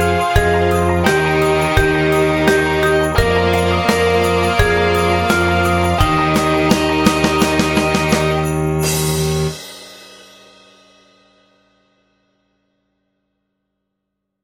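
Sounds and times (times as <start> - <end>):
Christmas song practice track in E flat: 0.0 - 10.8.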